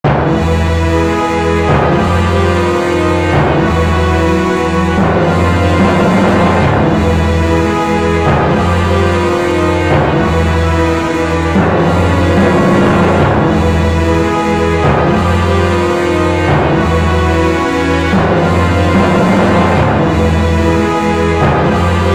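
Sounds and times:
horror music: 0.0s - 22.1s.

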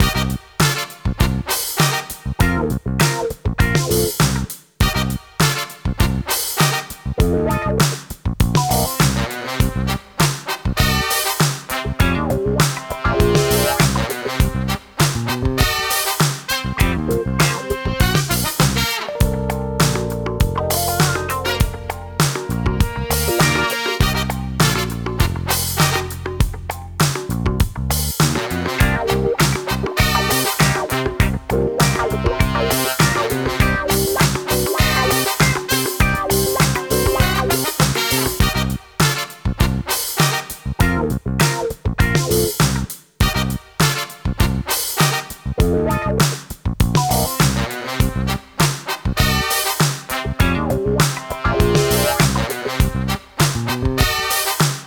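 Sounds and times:
funk music: 0.0s - 54.8s.

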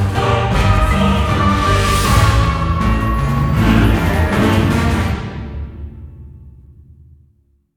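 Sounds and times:
transition sound: 0.2s - 5.9s.

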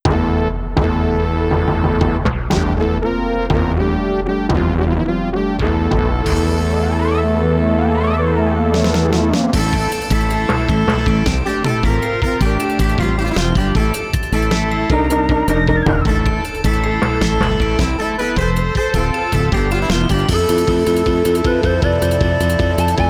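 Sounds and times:
ending sequence music on Roland LA synthesizer: 0.1s - 23.0s.

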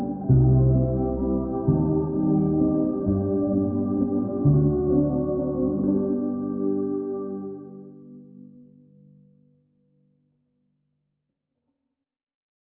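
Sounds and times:
waltz with reverb: 0.0s - 8.7s.

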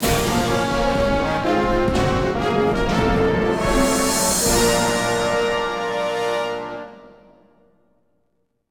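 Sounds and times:
combat victory jingle: 0.0s - 6.9s.

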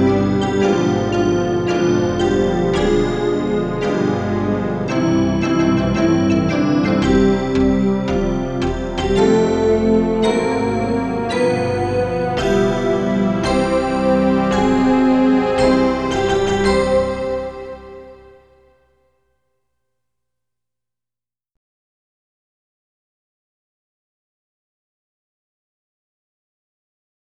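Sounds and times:
synthesizer: 0.0s - 18.9s.

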